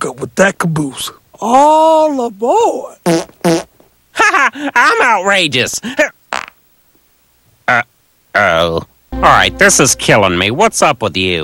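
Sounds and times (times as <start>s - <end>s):
speech: 0.0s - 3.6s, 4.4s - 6.2s, 7.7s - 11.4s
farts: 3.1s - 3.7s, 6.4s - 6.6s.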